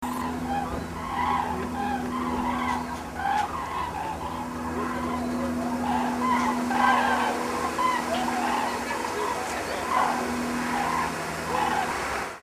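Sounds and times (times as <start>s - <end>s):
cranes calling: 0.0s - 12.4s.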